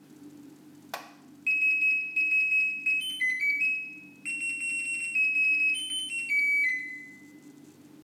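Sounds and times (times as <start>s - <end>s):
washing machine bells: 1.5s - 7.6s.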